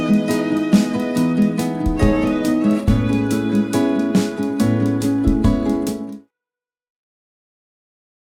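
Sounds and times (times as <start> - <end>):
acoustic music: 0.0 - 6.2.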